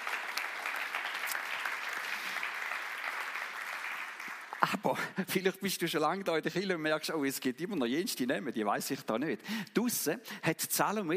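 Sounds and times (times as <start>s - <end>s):
audience applause: 0.0s - 4.8s
speech: 4.6s - 11.1s.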